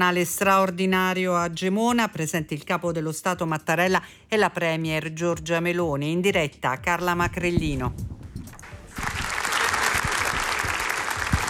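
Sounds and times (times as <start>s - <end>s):
speech: 0.0s - 8.1s
long crowd applause: 8.7s - 11.4s.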